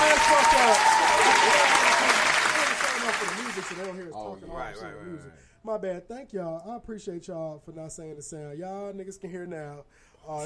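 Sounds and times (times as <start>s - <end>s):
crowd clapping: 0.0s - 4.1s
speech: 4.4s - 10.4s.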